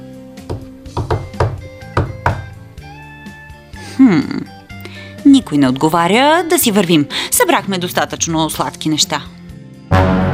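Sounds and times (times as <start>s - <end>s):
knocking on a door: 0.5s - 2.6s
speech: 4.0s - 4.6s, 5.2s - 10.2s.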